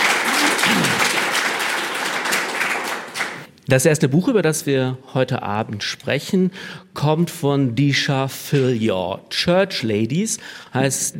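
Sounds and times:
audience applause: 0:00.0 - 0:03.5
speech: 0:03.7 - 0:11.1.

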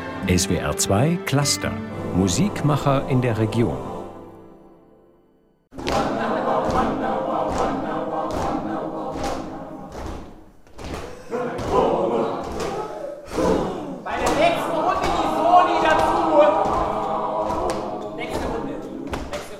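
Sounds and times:
speech: 0:00.3 - 0:03.9
students' feet stomping loudly: 0:05.7 - 0:13.6, 0:14.2 - 0:19.5.

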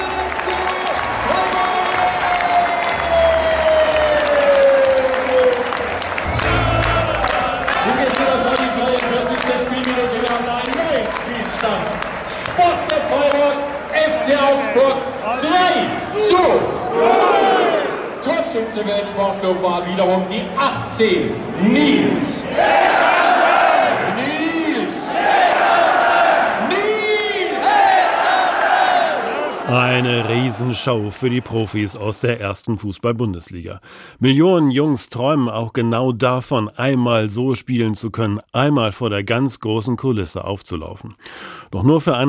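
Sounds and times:
stadium crowd roaring at SC Freiburg Bundesliga goal: 0:00.0 - 0:31.8
football stadium crowd chanting: 0:06.1 - 0:08.7, 0:16.6 - 0:18.1, 0:21.3 - 0:24.2, 0:24.8 - 0:26.7, 0:27.4 - 0:30.6
speech: 0:19.4 - 0:22.9, 0:30.0 - 0:42.2.

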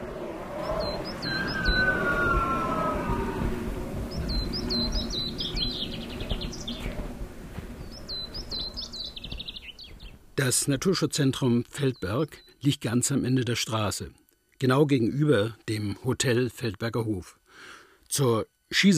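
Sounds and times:
steady monotone rushing roar: 0:00.0 - 0:09.4
winter bird chirping: 0:00.6 - 0:03.2, 0:04.1 - 0:07.1, 0:07.8 - 0:10.2
speech: 0:10.4 - 0:18.9.

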